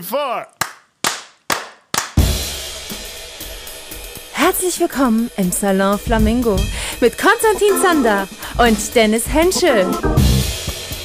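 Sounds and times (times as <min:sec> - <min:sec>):
speech: 0:00.0 - 0:00.6, 0:04.5 - 0:10.2
hand claps: 0:00.6 - 0:02.3.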